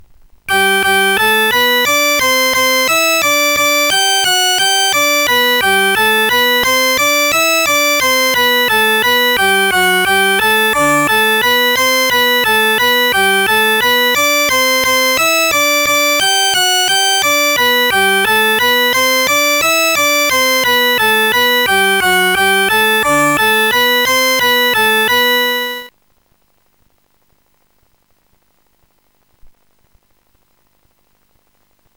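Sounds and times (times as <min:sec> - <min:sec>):
organ: 0:00.5 - 0:25.9.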